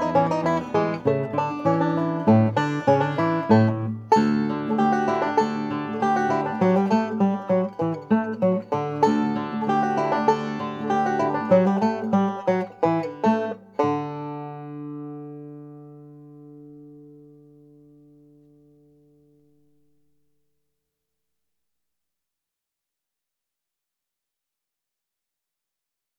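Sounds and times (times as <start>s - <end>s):
banjo playing a musette in D major: 0.0s - 19.4s.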